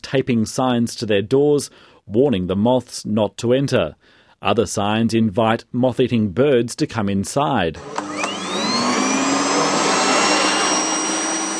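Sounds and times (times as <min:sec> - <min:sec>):
speech: 0:00.1 - 0:08.2
vacuum cleaner running: 0:07.8 - 0:11.5.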